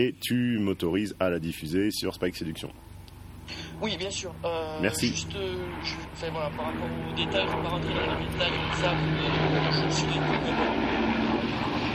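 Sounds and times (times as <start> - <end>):
speech: 0.0 - 2.9, 3.5 - 11.9
airplane passing overhead: 0.7 - 11.9.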